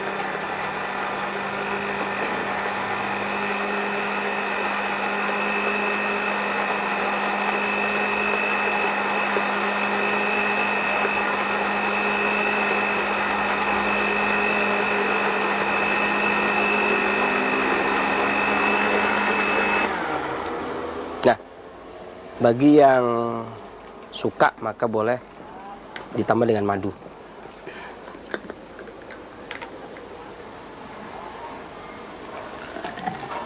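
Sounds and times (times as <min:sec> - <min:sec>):
electric blender blending ingredients until smooth: 0:00.0 - 0:21.3, 0:32.3 - 0:33.4
speech: 0:22.4 - 0:25.3, 0:26.1 - 0:27.0.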